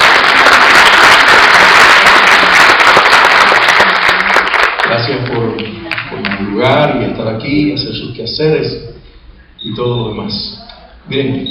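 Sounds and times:
audience applause: 0:00.0 - 0:06.5
speech: 0:07.2 - 0:09.0, 0:09.6 - 0:11.4.

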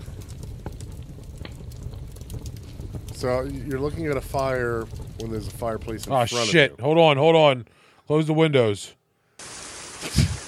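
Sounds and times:
rain falling: 0:00.0 - 0:06.7, 0:09.4 - 0:10.4
speech: 0:03.2 - 0:09.0.

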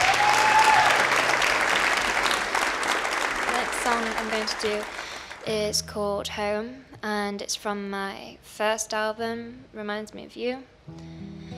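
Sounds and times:
audience on the Red Barn stage applauding: 0:00.0 - 0:05.5
speech: 0:03.9 - 0:11.5.

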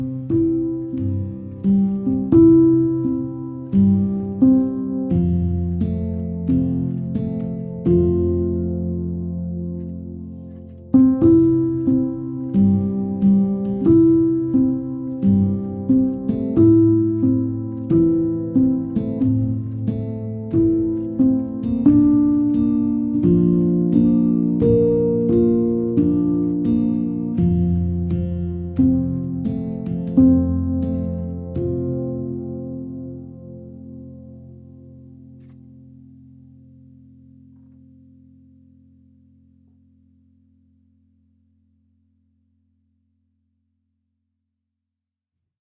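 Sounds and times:
instrumental music: 0:00.0 - 0:36.4.

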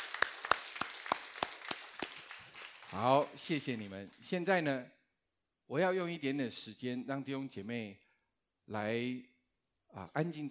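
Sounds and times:
audience clapping hands: 0:00.0 - 0:04.3
speech: 0:02.9 - 0:05.0, 0:05.7 - 0:08.0, 0:08.7 - 0:09.3, 0:09.9 - 0:10.4.

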